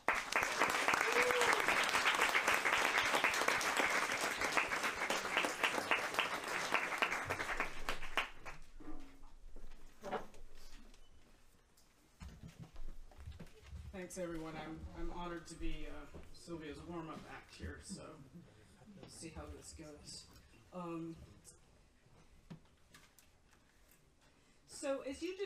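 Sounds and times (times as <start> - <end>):
audience applause at a book talk at Moe's Books: 0.0 - 8.7
speech: 14.1 - 18.5, 19.2 - 21.3, 24.8 - 25.4.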